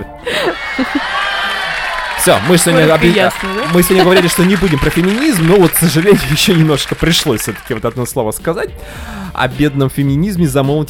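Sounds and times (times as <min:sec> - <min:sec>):
speech: 0:00.0 - 0:01.1, 0:02.2 - 0:10.8
laughter: 0:00.3 - 0:07.9
crowd cheering and applauding: 0:00.3 - 0:08.3
whooping shouts: 0:00.5 - 0:07.8.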